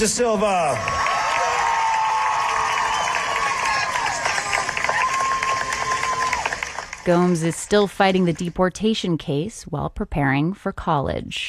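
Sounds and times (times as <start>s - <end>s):
speech: 0.0s - 1.1s, 7.1s - 11.4s
crowd applauding at graduation: 0.0s - 8.6s
crowd cheering at graduation: 0.3s - 7.0s.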